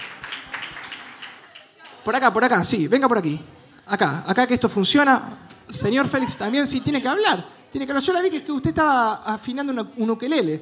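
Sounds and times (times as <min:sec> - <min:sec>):
audience applause: 0:00.0 - 0:02.0
speech: 0:02.0 - 0:10.5.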